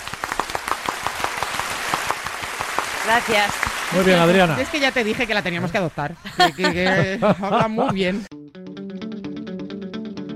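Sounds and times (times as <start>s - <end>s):
audience applause: 0.0s - 5.8s
speech: 3.1s - 8.3s
laughter: 3.9s - 8.3s.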